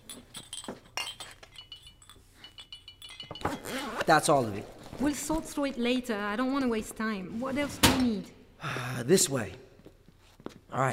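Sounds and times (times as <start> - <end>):
glass jars clinking together: 0.0 - 4.0
speech: 4.1 - 9.6, 10.8 - 10.9.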